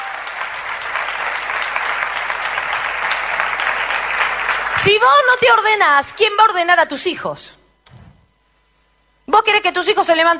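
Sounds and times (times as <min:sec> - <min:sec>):
audience applauding: 0:00.0 - 0:05.0
speech: 0:04.8 - 0:07.6, 0:09.4 - 0:10.3.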